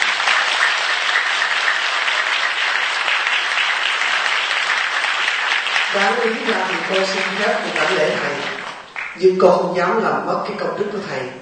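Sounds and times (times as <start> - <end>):
crowd applauding at a two-day Buddhist retreat in the Sacramento area: 0.0 - 9.2
speech: 6.0 - 8.5, 9.2 - 11.4.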